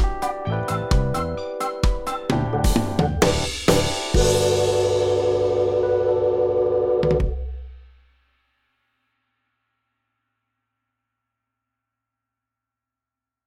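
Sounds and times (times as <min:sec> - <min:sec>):
instrumental music at 130 BPM: 0:00.0 - 0:07.8.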